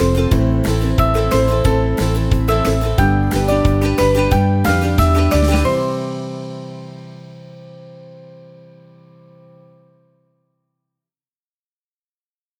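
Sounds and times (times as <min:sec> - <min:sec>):
fun corporate ukulele music: 0:00.0 - 0:07.2.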